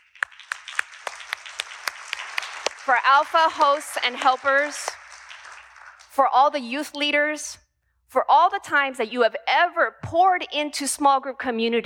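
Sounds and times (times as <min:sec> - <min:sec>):
audience clapping: 0:00.0 - 0:06.3
speech: 0:02.9 - 0:05.0, 0:06.2 - 0:11.8.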